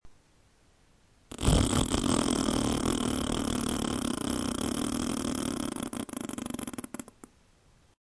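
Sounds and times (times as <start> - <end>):
fart: 1.3 - 7.3.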